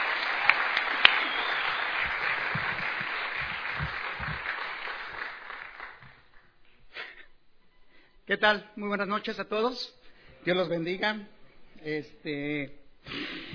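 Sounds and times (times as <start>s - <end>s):
audience applause welcoming a speaker: 0.0s - 6.4s
speech: 8.3s - 13.2s.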